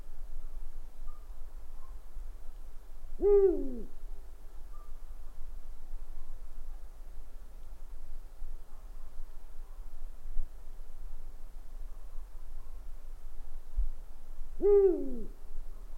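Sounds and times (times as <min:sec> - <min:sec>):
owl hooting: 0:03.2 - 0:04.0, 0:14.6 - 0:15.4.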